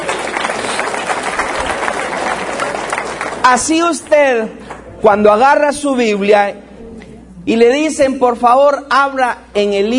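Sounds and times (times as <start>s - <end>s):
group clapping: 0.0s - 4.9s
speech: 3.5s - 6.7s, 7.4s - 9.9s.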